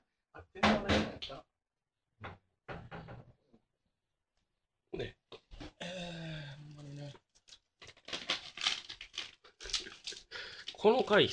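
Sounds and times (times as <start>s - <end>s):
speech: 0.4s - 1.5s, 2.2s - 2.4s, 5.0s - 5.2s, 10.8s - 11.3s
dried nori seaweed being torn and handled: 7.4s - 10.8s.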